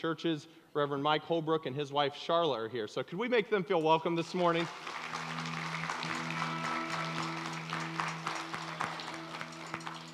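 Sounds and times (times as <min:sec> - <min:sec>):
speech: 0:00.0 - 0:05.2
audience clapping: 0:04.3 - 0:10.1.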